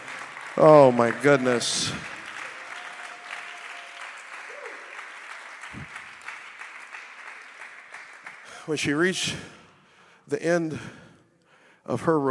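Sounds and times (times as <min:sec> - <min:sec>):
audience clapping: 0:00.0 - 0:09.4
speech: 0:00.6 - 0:02.1, 0:08.7 - 0:09.6, 0:10.3 - 0:11.0, 0:11.9 - 0:12.3.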